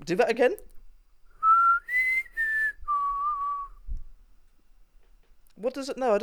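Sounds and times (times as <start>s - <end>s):
speech: 0.1s - 0.7s, 5.6s - 6.2s
person whistling a four-note bird call: 1.4s - 3.8s.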